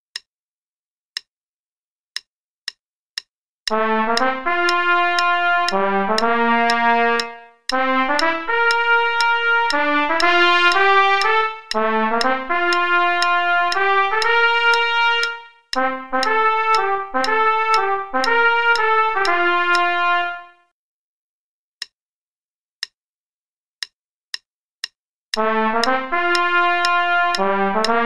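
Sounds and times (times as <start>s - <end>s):
trumpet playing a play-along part: 3.7s - 20.6s, 25.4s - 28.0s.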